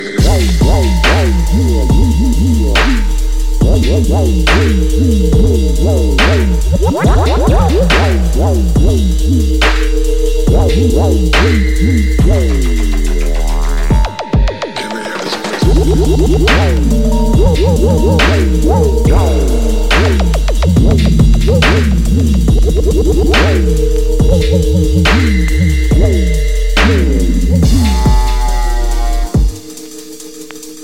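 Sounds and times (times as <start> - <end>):
jazz music: 0.0 - 30.8.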